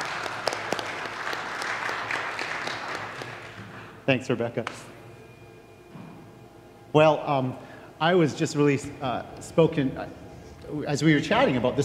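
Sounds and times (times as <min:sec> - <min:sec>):
church congregation applauding as a speaker comes forward: 0:00.0 - 0:03.8
speech: 0:04.1 - 0:04.9, 0:07.0 - 0:11.8.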